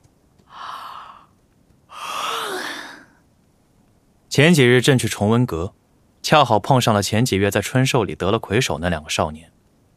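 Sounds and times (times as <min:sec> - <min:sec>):
drowsy person yawning: 0:00.5 - 0:01.3, 0:01.9 - 0:03.1
speech: 0:04.4 - 0:09.6.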